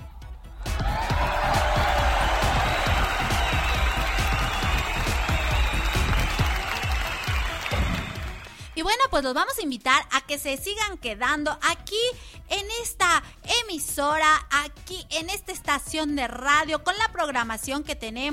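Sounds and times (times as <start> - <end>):
loud applause: 0.6 - 8.8
speech: 8.8 - 18.3.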